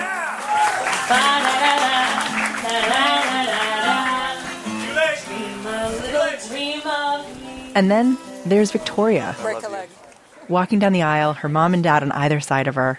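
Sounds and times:
wedding guests applauding: 0:00.0 - 0:05.2
wedding guests cheering: 0:00.0 - 0:06.9
speech: 0:07.8 - 0:09.7, 0:10.5 - 0:12.9.

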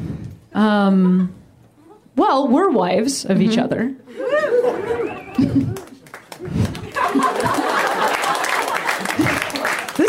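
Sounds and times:
speech: 0:00.6 - 0:01.4, 0:02.2 - 0:05.8
audience clapping: 0:05.2 - 0:10.0.

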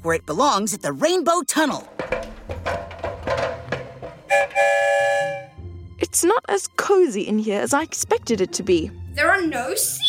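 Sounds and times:
speech: 0:00.0 - 0:02.9, 0:04.3 - 0:05.2, 0:06.1 - 0:10.0
train rattling knocking clatter: 0:01.9 - 0:04.6
train horn or whistle blast: 0:04.3 - 0:05.6.

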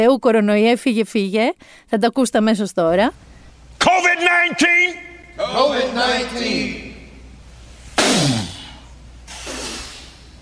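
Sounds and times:
speech: 0:00.0 - 0:06.9
man blowing hard into a microphone: 0:08.0 - 0:10.4.

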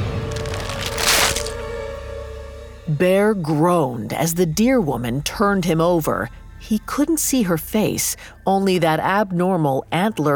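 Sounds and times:
lingering crackle: 0:00.0 - 0:01.7
steady low hum: 0:00.0 - 0:10.2
bone snapping: 0:00.3 - 0:01.6
speech: 0:02.9 - 0:10.3.

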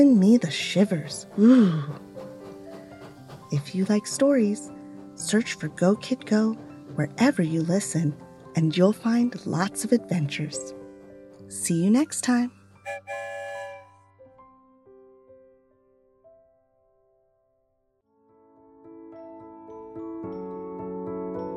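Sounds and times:
speech: 0:00.0 - 0:02.0, 0:03.5 - 0:10.8, 0:11.5 - 0:13.4
train whistle: 0:12.8 - 0:14.0.

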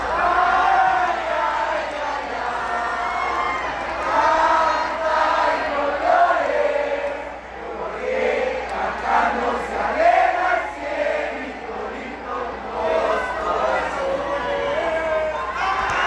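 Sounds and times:
stadium crowd cheering: 0:00.0 - 0:16.0.

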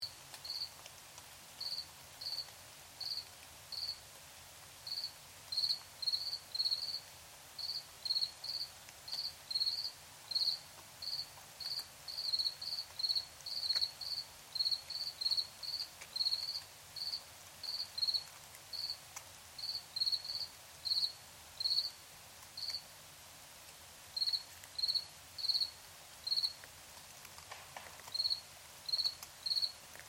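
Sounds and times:
background hiss: 0:00.0 - 0:30.0
crickets chirping: 0:00.4 - 0:00.7, 0:01.6 - 0:04.0, 0:04.9 - 0:07.0, 0:07.6 - 0:19.0, 0:19.6 - 0:22.0, 0:22.6 - 0:22.8, 0:24.2 - 0:26.6, 0:28.1 - 0:29.8.

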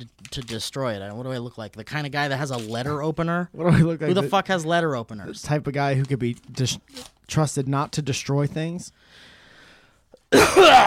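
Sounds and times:
speech: 0:00.0 - 0:09.3
person sneezing: 0:10.3 - 0:10.8.

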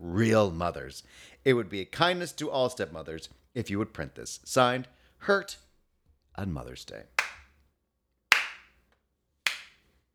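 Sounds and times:
speech: 0:00.1 - 0:05.6, 0:06.4 - 0:07.2
slow clap: 0:07.2 - 0:07.5, 0:08.3 - 0:08.9, 0:09.5 - 0:09.9.

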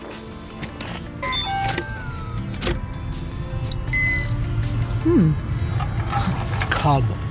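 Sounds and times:
engines starting up with low rumbling hum: 0:00.2 - 0:07.2
engine whining tones: 0:00.5 - 0:07.2
warbling chirp: 0:03.4 - 0:05.4.

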